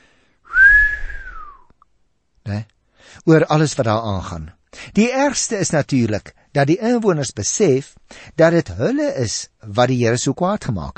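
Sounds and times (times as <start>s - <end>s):
long whistle of astonishment from a passer-by: 0.5s - 1.8s
speech: 2.5s - 10.9s.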